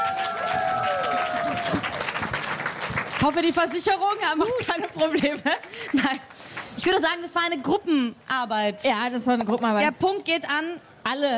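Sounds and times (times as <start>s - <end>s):
audience applause: 0.0s - 3.9s
speech: 3.2s - 11.3s.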